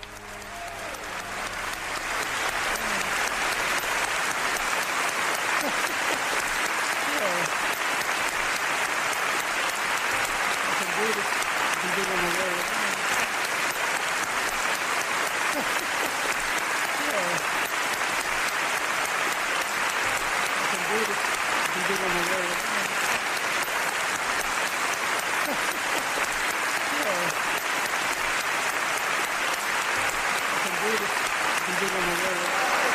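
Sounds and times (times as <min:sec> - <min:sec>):
laughter: 0:00.0 - 0:13.3, 0:13.9 - 0:18.6, 0:19.5 - 0:28.5, 0:29.4 - 0:32.9
audience applause: 0:00.0 - 0:32.9.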